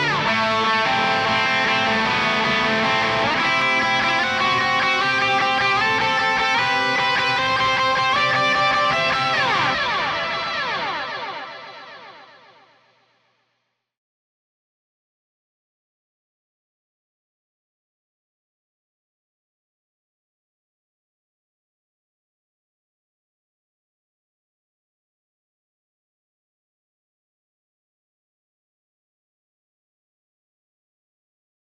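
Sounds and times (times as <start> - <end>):
guitar in C: 0.0 - 13.3.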